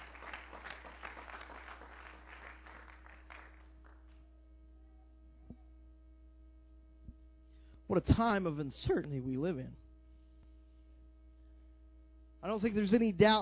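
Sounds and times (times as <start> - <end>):
audience hand clapping: 0.0 - 4.2
speech: 7.9 - 9.8, 12.4 - 13.3.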